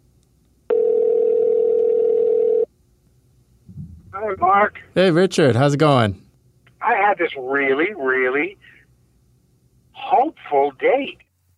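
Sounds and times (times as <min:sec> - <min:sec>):
telephone dial tone for an outgoing call: 0:00.7 - 0:02.7
speech: 0:04.3 - 0:06.2, 0:07.1 - 0:08.8, 0:10.0 - 0:11.5.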